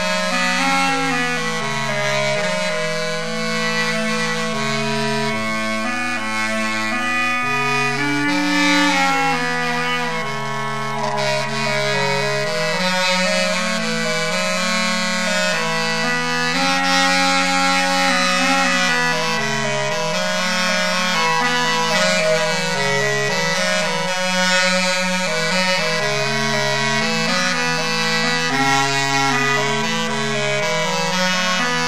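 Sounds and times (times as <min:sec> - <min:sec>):
aulos playing in Hypolydian mode: 0:00.0 - 0:31.8.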